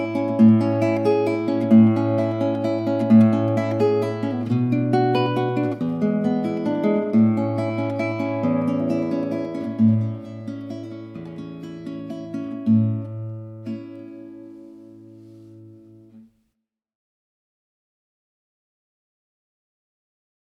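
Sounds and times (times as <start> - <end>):
instrumental music: 0.0 - 16.3.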